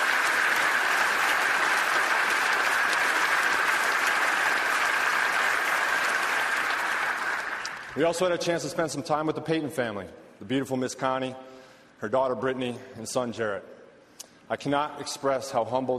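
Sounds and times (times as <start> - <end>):
round of applause: 0.0 - 8.3
speech: 8.0 - 13.8, 14.5 - 15.9.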